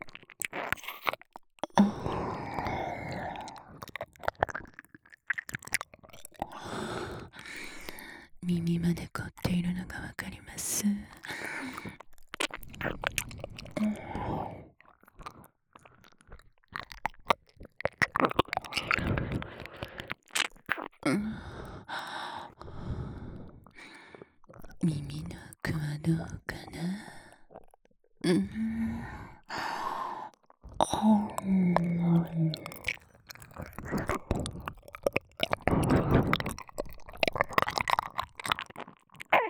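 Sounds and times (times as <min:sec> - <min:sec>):
ear licking sounds: 0:00.0 - 0:08.1, 0:11.0 - 0:22.9, 0:28.4 - 0:39.4
oral sex sounds: 0:00.0 - 0:39.4.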